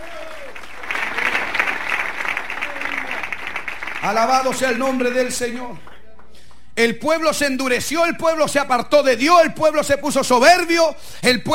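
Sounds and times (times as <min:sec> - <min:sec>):
audience clapping hands: 0:00.0 - 0:06.8
speech: 0:04.0 - 0:05.9, 0:06.8 - 0:11.5.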